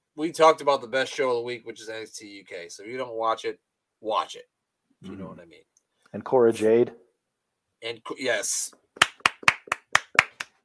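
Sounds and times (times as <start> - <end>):
speech: 0.2 - 7.0, 7.8 - 9.1
one person clapping hands: 9.0 - 10.6.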